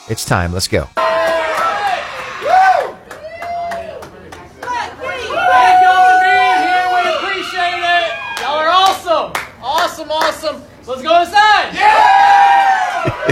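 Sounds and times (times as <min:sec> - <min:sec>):
speech: 0:00.1 - 0:01.1, 0:10.0 - 0:12.4
excited crowd entering store at opening: 0:01.0 - 0:09.0, 0:11.7 - 0:13.3.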